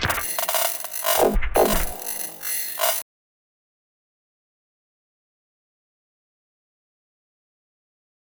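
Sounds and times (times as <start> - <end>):
formantgran drums: 0.0 - 3.0.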